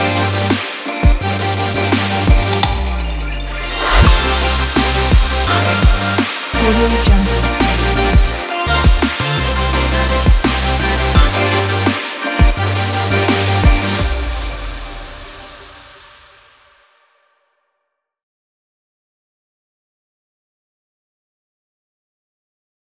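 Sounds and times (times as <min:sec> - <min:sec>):
optimistic future bass music: 0:00.0 - 0:15.9.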